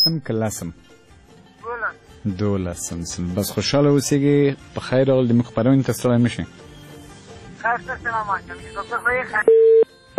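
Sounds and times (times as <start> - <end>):
disconnection tone from a dropped call on a radio phone-in show: 0.0 - 0.2, 9.4 - 10.1
speech: 0.0 - 1.0, 2.2 - 6.7, 7.6 - 9.7.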